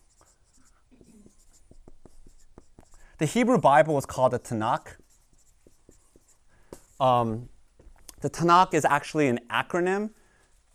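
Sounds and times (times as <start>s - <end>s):
handwriting strokes: 0.0s - 8.8s, 10.1s - 10.7s
speech: 3.2s - 5.0s, 7.0s - 7.5s, 8.2s - 10.2s.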